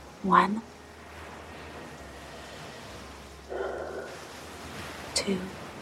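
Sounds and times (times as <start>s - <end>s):
speech: 0.2s - 0.8s, 5.3s - 5.6s
slow deep breaths during a guided breathing exercise: 0.8s - 4.2s.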